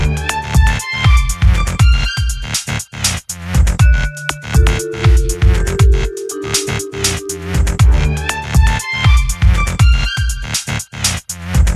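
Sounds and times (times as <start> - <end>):
simple background music loop: 0.0 - 2.4, 3.8 - 10.4.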